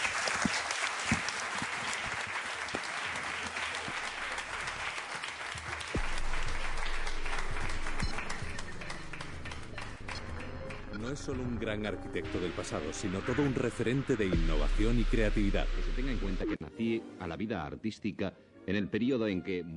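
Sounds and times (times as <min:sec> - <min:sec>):
audience applause: 0:00.0 - 0:14.3
speech: 0:11.1 - 0:19.7.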